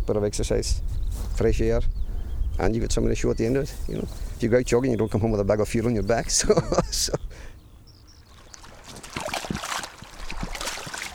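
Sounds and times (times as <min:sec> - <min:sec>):
speech: 0:00.1 - 0:02.0, 0:02.6 - 0:07.5
laughter: 0:06.3 - 0:07.2
water splashing in a stream as rubber boots are washed: 0:08.2 - 0:11.1.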